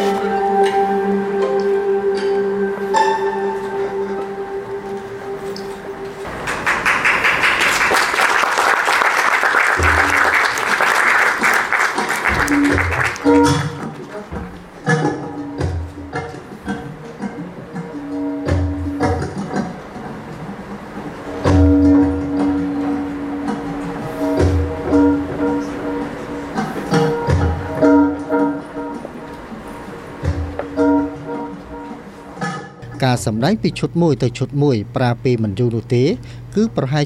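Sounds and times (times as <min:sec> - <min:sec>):
tonal music: 0:00.0 - 0:37.0
Cambodian and foreign spectators applauding an acrobatic troupe: 0:06.2 - 0:14.1
scattered percussive clanks: 0:09.8 - 0:10.7, 0:11.8 - 0:33.0
speech: 0:33.1 - 0:37.0.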